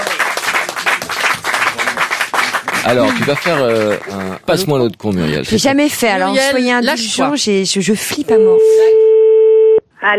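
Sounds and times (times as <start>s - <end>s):
applause in a radio studio: 0.0s - 4.6s
speech: 2.8s - 9.1s.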